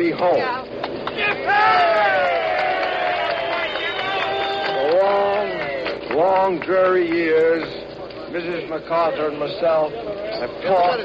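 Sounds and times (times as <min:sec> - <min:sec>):
speech: 0:00.0 - 0:01.9, 0:06.2 - 0:11.0
crowd cheering a tumultuous welcome for General MacArthur: 0:01.1 - 0:06.2.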